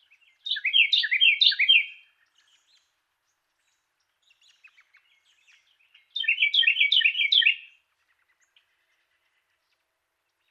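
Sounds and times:
Carolina wren song: 0.0 - 10.4.

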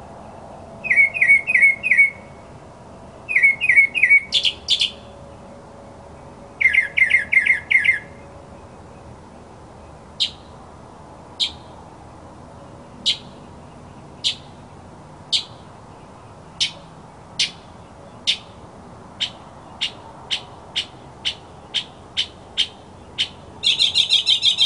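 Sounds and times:
mockingbird song: 0.8 - 2.3, 3.3 - 5.1, 6.2 - 10.5, 11.4 - 11.7, 13.0 - 14.7, 15.3 - 18.6, 19.2 - 24.6.

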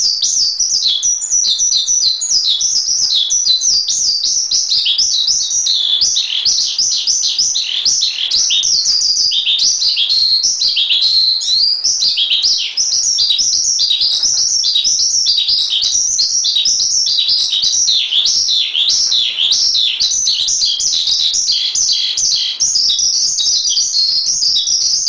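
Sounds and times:
Asian pied starling singing: 0.0 - 25.0.

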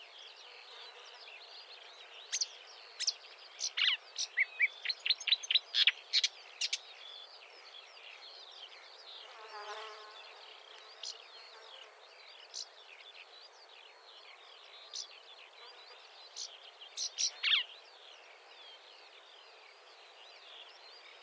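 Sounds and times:
marsh warbler song: 0.0 - 21.2.

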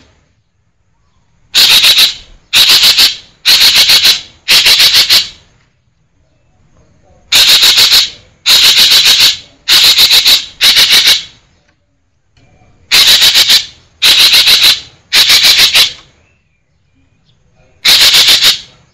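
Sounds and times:
green magpie harsh chattering: 1.6 - 5.4, 7.3 - 11.4, 12.9 - 16.0, 17.8 - 18.9.

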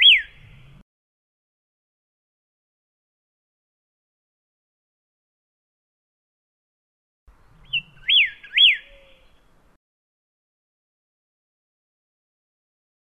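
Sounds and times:
pyrrhuloxia singing thin and slurred whistles: 0.0 - 0.8, 7.3 - 9.5.

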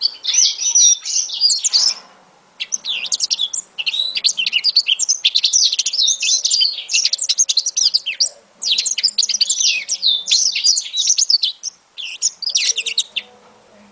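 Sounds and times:
African citril song of high twittering chirps and trills: 0.0 - 13.4.

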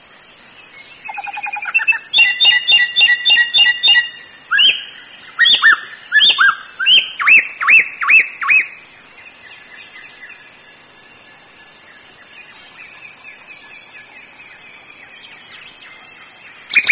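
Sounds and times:
Sooty-headed Bulbul calling: 1.0 - 8.8, 16.7 - 16.8.

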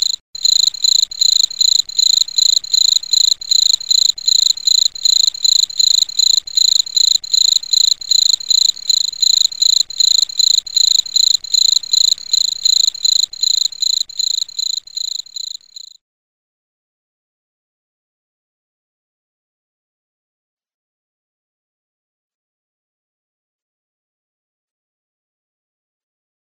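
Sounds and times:
cricket chirping: 0.0 - 16.0.

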